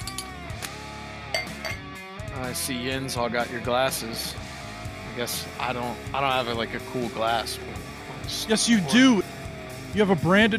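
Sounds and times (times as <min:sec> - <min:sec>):
beer bottles opening: 0:00.0 - 0:01.9
speech: 0:02.4 - 0:04.5, 0:05.2 - 0:09.2, 0:10.0 - 0:10.5.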